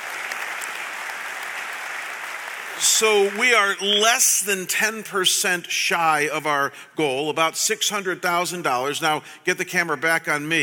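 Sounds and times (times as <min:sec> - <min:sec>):
audience applause: 0:00.0 - 0:03.8
speech: 0:02.8 - 0:10.6.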